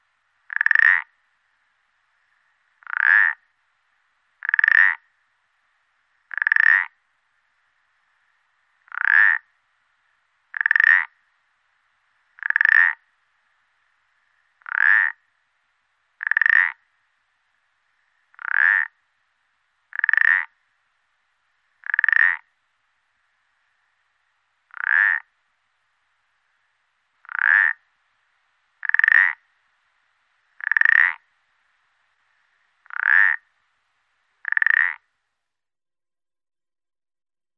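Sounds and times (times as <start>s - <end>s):
Pelodytes punctatus calling: 0.5s - 1.1s, 2.8s - 3.4s, 4.4s - 5.1s, 6.3s - 7.0s, 8.8s - 9.5s, 10.5s - 11.2s, 12.4s - 13.0s, 14.6s - 15.2s, 16.2s - 16.8s, 18.3s - 19.0s, 19.9s - 20.6s, 21.8s - 22.5s, 24.7s - 25.3s, 27.2s - 27.8s, 28.8s - 29.4s, 30.6s - 31.2s, 32.8s - 33.4s, 34.4s - 35.0s.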